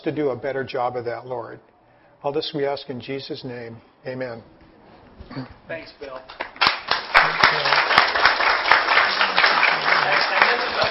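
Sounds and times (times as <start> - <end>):
speech: 0.0 - 4.6, 5.2 - 6.5, 7.5 - 7.9
audience applause: 6.3 - 10.9.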